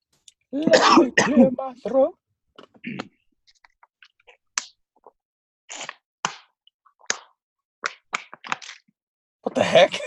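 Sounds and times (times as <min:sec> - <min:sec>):
speech: 0:00.5 - 0:02.2, 0:02.8 - 0:03.1, 0:09.5 - 0:10.0
throat clearing and coughing: 0:00.6 - 0:01.6, 0:02.8 - 0:03.2.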